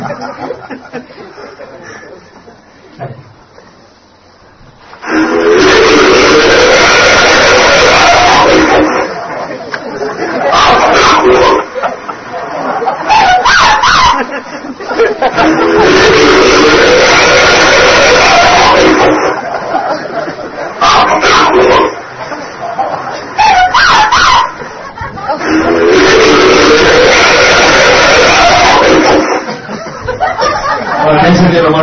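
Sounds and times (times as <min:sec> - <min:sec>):
laughter: 0:00.0 - 0:03.2, 0:08.4 - 0:16.6, 0:18.6 - 0:31.7
alleged Bigfoot vocalizations recorded in the Sierras Altas of California: 0:05.0 - 0:09.2, 0:10.3 - 0:11.9, 0:12.8 - 0:14.4, 0:15.2 - 0:19.6, 0:20.8 - 0:22.0, 0:23.4 - 0:24.7, 0:25.3 - 0:29.6.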